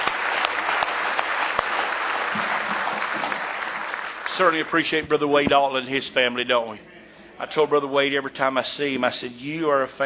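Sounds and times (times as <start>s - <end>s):
audience clapping: 0.0s - 5.3s
speech: 4.4s - 10.0s.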